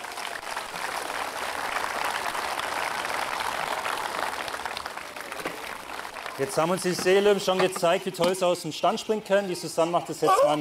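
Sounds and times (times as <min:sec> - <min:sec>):
audience applause: 0:00.0 - 0:07.4
speech: 0:06.4 - 0:10.5.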